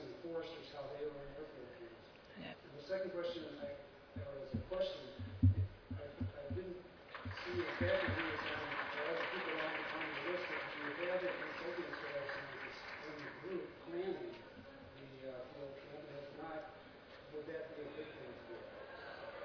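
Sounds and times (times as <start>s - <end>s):
murmur of voices: 0.0s - 19.4s
speech: 2.4s - 18.8s
audience clapping: 4.6s - 13.7s.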